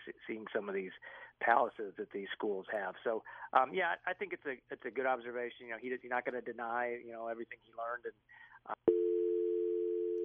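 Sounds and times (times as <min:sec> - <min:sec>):
speech: 0:00.1 - 0:08.8
telephone dial tone after a phone call cut off: 0:08.9 - 0:10.2.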